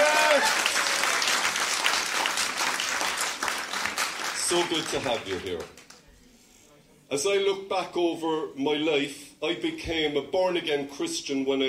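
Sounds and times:
large crowd applauding: 0.0s - 6.0s
speech: 4.5s - 5.8s, 7.1s - 11.6s.

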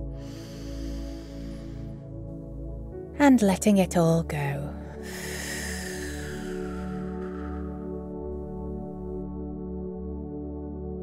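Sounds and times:
sustained low tonal drone: 0.0s - 10.0s
large breath drawn in: 0.1s - 2.0s, 5.0s - 8.0s
speech: 3.2s - 4.6s.

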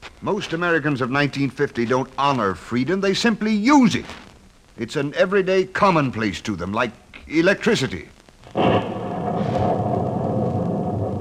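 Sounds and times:
speech: 0.2s - 8.9s
thunder: 8.5s - 11.2s.

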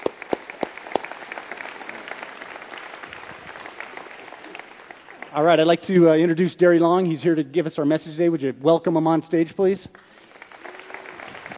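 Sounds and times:
audience applause for a speaker leaving the stage: 0.0s - 6.3s, 9.9s - 11.5s
speech: 5.4s - 10.1s.

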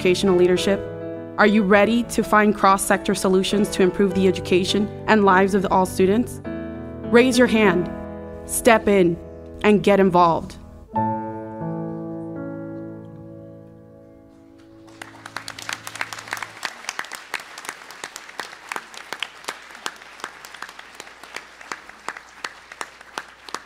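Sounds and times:
speech: 0.0s - 6.5s, 7.1s - 11.0s
audience applause: 14.8s - 23.6s.

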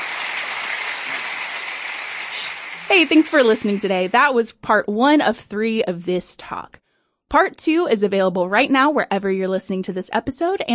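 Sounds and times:
audience applause: 0.0s - 4.2s
speech: 2.9s - 10.7s.

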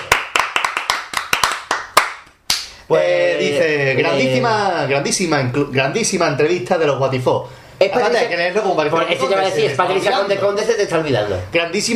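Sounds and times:
applause: 0.0s - 2.6s
speech: 2.9s - 11.9s.

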